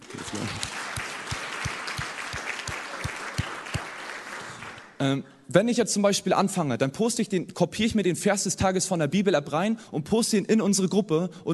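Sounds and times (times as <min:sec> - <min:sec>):
audience applause: 0:00.0 - 0:05.0
speech: 0:05.0 - 0:11.5.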